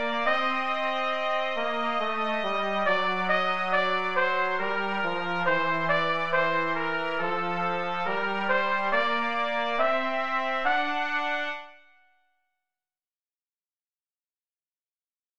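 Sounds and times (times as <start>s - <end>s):
trumpet duo: 0.0s - 11.9s.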